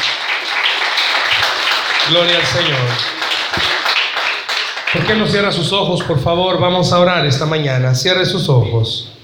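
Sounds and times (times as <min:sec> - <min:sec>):
audience applauding: 0:00.0 - 0:06.2
speech: 0:02.1 - 0:03.9, 0:04.9 - 0:09.2.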